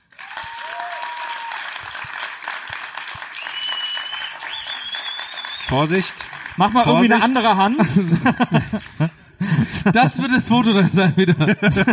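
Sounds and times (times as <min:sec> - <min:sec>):
live audience applause: 0:00.0 - 0:09.1
speech: 0:05.7 - 0:11.9
laughter: 0:06.8 - 0:11.9.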